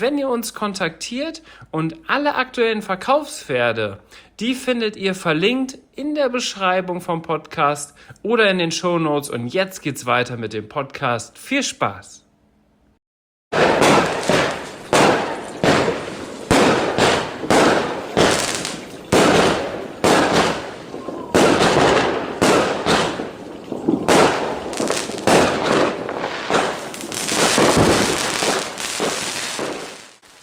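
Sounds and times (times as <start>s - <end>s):
speech: 0.0s - 12.2s
New Year's fireworks and firecrackers banging: 13.5s - 30.4s.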